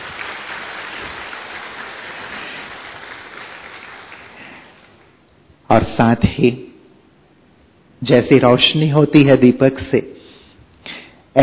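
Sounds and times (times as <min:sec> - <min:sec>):
audience applause: 0:00.0 - 0:05.1
speech: 0:05.7 - 0:06.7, 0:08.0 - 0:10.2.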